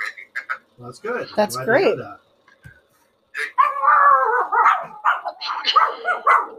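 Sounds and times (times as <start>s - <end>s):
speech: 0.9s - 2.3s
small Pomeranian dogs barking: 3.5s - 6.5s.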